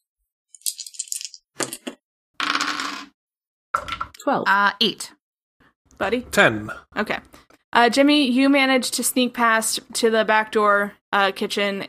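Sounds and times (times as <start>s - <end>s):
dice being rolled: 0.6s - 3.1s, 3.8s - 4.1s
speech: 4.2s - 5.2s, 6.0s - 11.8s.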